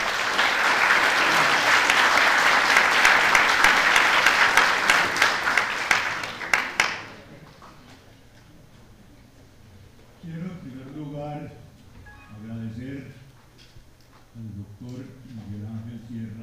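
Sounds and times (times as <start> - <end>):
audience applause: 0.0 - 7.3.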